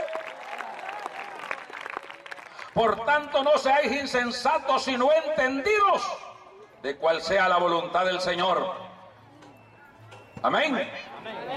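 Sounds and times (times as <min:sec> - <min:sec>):
audience applause: 0:00.0 - 0:02.8
speech: 0:02.8 - 0:08.8, 0:10.4 - 0:11.4.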